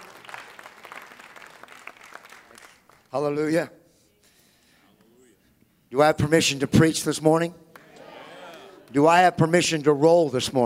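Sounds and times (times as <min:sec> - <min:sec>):
audience applause: 0:00.0 - 0:03.0
speech: 0:03.1 - 0:03.8, 0:05.9 - 0:07.6, 0:08.9 - 0:10.6.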